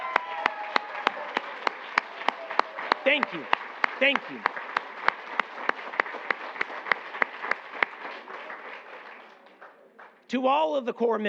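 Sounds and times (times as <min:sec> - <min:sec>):
crisp claps for a team at a ceremony: 0:00.0 - 0:10.3
speech: 0:03.1 - 0:04.6, 0:10.3 - 0:11.2.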